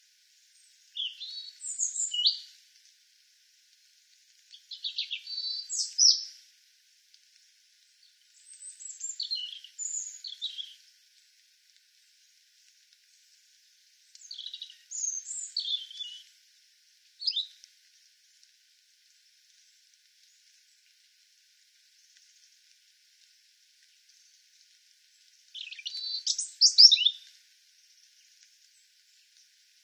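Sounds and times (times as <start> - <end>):
European robin song: 0.6 - 2.5, 4.5 - 6.4, 14.2 - 16.3, 17.2 - 17.6, 25.5 - 27.3.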